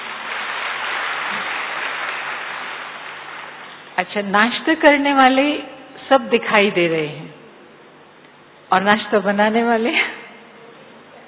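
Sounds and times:
audience clapping: 0:00.0 - 0:04.0
speech: 0:04.0 - 0:07.4, 0:08.7 - 0:10.1.

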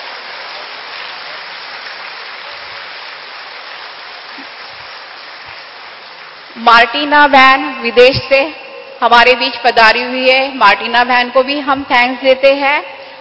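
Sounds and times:
audience applause: 0:00.0 - 0:06.6
speech: 0:06.6 - 0:12.9.

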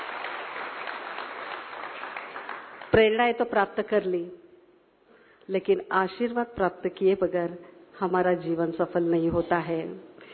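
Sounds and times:
audience applauding and cheering a woman: 0:00.0 - 0:03.0
speech: 0:02.9 - 0:04.4, 0:05.5 - 0:10.1.

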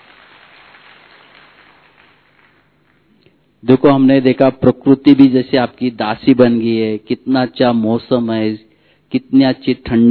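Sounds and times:
crowd clapping hands: 0:00.0 - 0:03.2
speech: 0:03.6 - 0:10.0.

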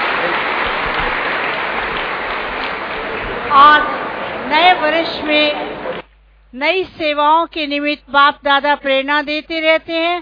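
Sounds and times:
audience applause during a bouquet presentation at a gathering: 0:00.0 - 0:06.0
speech: 0:03.6 - 0:05.7, 0:06.5 - 0:10.2.

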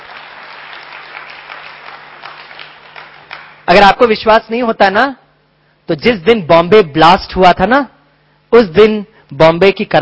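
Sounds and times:
audience applause: 0:00.0 - 0:03.6
speech: 0:03.7 - 0:05.2, 0:05.9 - 0:07.9, 0:08.5 - 0:10.0.

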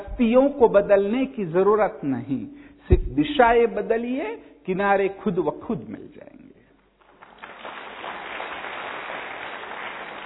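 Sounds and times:
speech: 0:00.2 - 0:06.4
audience clapping: 0:07.0 - 0:10.2.

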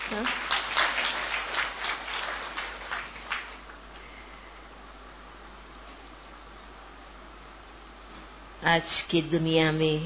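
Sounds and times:
audience clapping: 0:00.0 - 0:03.9
speech: 0:08.6 - 0:10.0.

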